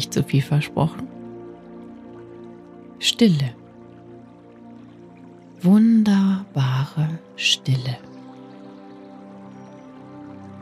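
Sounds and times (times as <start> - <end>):
speech: 0.0 - 1.2, 3.0 - 3.6, 5.6 - 8.1
slowly flowing river water: 0.0 - 10.5.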